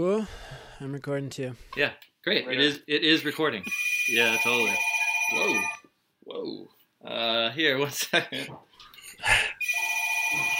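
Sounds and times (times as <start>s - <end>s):
speech: 0.0s - 5.8s, 6.4s - 9.5s
old-style landline telephone ringing: 3.6s - 5.9s, 9.6s - 10.5s.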